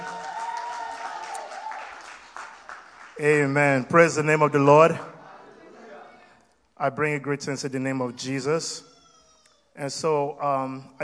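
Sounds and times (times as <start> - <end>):
audience applauding: 0.0 - 3.8
speech: 3.2 - 5.1, 6.8 - 8.9, 9.8 - 11.0.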